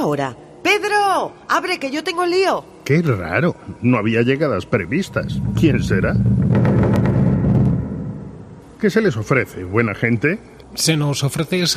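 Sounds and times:
speech: 0.0 - 6.7, 8.8 - 11.7
deep rumble: 4.7 - 8.8
heavy booming knocks on a door: 5.2 - 8.7.

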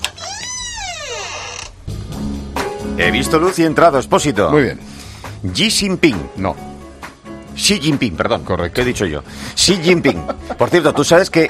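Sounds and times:
door creaking open: 0.0 - 1.9
speech: 3.0 - 6.7, 7.6 - 11.4
laughter: 9.7 - 11.1.

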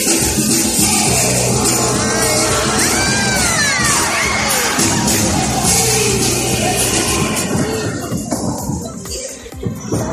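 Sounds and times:
circus audience screaming and shouting as an acrobat falls: 0.0 - 9.1.

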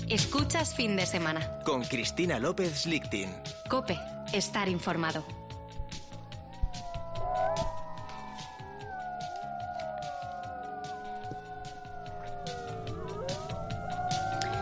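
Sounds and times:
speech: 0.1 - 5.4
animal howls: 0.7 - 14.6.

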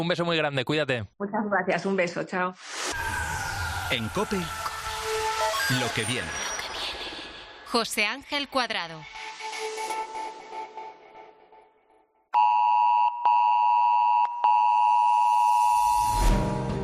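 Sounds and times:
speech: 0.0 - 3.2, 3.9 - 4.6, 5.7 - 6.5, 7.7 - 9.2
civil protection emergency alert tone: 3.0 - 7.4, 12.4 - 16.3.

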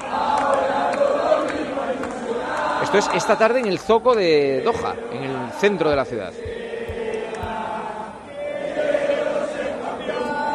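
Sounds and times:
Argentine football fans chanting: 0.0 - 3.6, 4.4 - 10.5
speech: 2.9 - 6.5.

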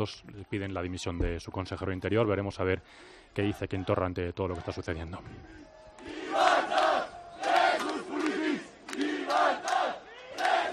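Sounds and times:
speech: 0.0 - 5.6
rioters shouting in the streets of Barcelona: 5.4 - 10.7.

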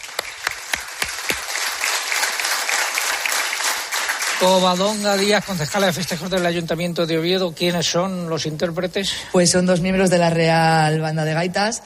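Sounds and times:
crowd applause: 0.0 - 6.5
speech: 4.4 - 11.8.

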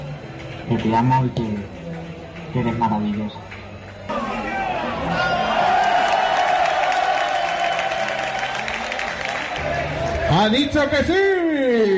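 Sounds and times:
speech: 0.7 - 1.8, 2.5 - 3.4, 10.3 - 11.9
audience applause at the Fernando Torres: 4.1 - 10.2.

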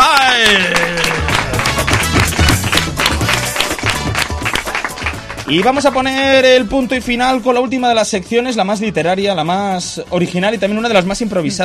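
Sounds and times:
loud audience applause: 0.0 - 6.0
speech: 5.5 - 11.6.

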